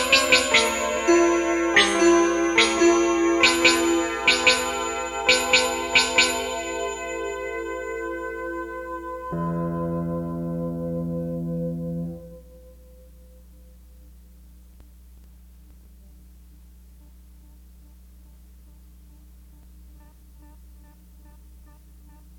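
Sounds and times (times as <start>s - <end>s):
guitar: 0.0s - 13.7s.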